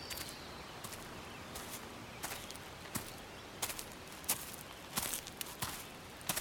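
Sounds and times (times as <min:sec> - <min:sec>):
footsteps of someone hiking through a park: 0:00.1 - 0:06.3.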